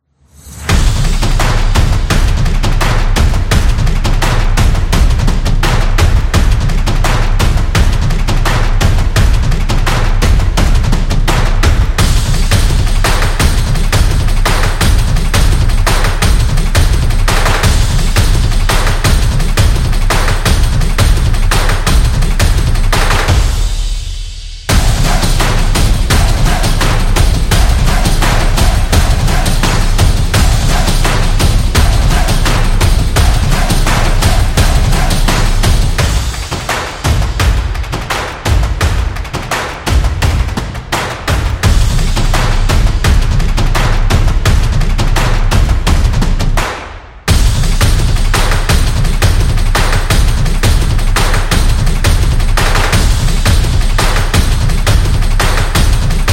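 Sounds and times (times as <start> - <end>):
drums: 0.5 - 56.3.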